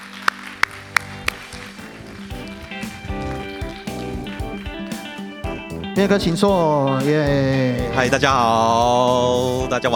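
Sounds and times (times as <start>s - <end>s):
audience applause: 0.0s - 5.4s
speech: 6.0s - 9.9s.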